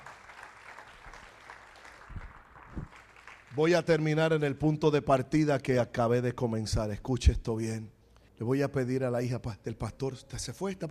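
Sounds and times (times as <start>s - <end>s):
people applauding: 0.0s - 4.1s
speech: 3.6s - 10.8s.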